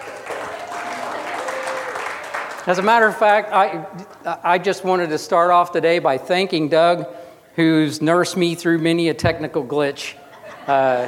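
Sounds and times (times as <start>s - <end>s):
audience hand clapping: 0.0s - 3.4s
speech: 2.6s - 11.0s
laughter: 10.0s - 11.0s.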